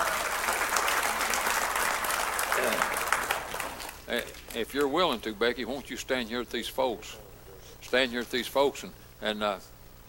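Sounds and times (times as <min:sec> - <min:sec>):
audience applause: 0:00.0 - 0:04.6
speech: 0:04.1 - 0:07.2, 0:07.9 - 0:09.7.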